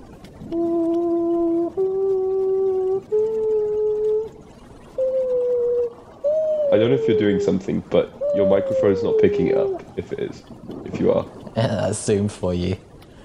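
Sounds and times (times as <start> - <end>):
voice imitating a pearl-spotted owl call: 0.5 - 4.4, 5.0 - 10.0
speech: 6.8 - 12.8.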